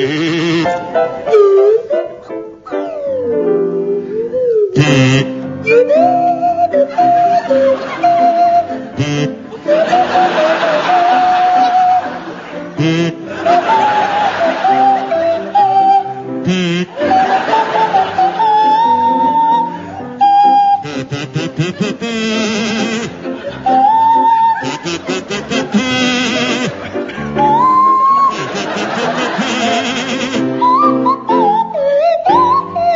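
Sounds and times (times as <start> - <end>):
buzzy kazoo playing a tune: 0.0 - 32.9
sliding swanee whistle playing a tune: 5.6 - 8.8, 12.9 - 21.9, 23.5 - 32.9
laughter: 5.9 - 16.2, 16.8 - 31.3.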